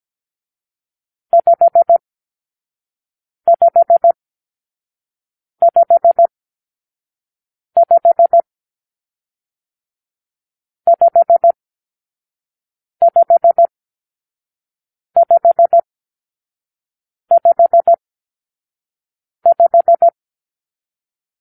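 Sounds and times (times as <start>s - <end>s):
morse code for numeral five: 1.4s - 2.0s, 3.5s - 4.2s, 5.6s - 6.3s, 7.8s - 8.5s, 10.9s - 11.6s, 13.0s - 13.7s, 15.2s - 15.8s, 17.3s - 18.0s, 19.4s - 20.2s.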